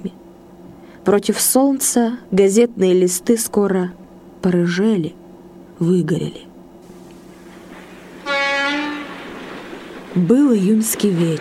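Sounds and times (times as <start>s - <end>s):
speech: 1.1s - 5.2s, 5.8s - 6.5s, 10.2s - 11.3s
passenger train moving on the Streletskaya railway: 6.8s - 11.3s.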